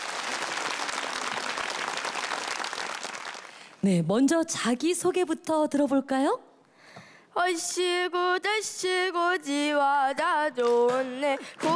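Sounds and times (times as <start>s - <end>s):
audience applause: 0.0s - 3.8s, 10.9s - 11.7s
speech: 3.8s - 6.5s, 7.4s - 11.7s.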